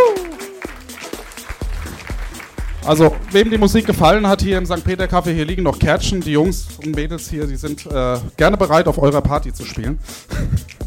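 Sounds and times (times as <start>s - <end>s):
person whooping: 0.0s - 0.8s
sparse audience clapping: 0.0s - 5.4s
speech: 2.9s - 10.8s.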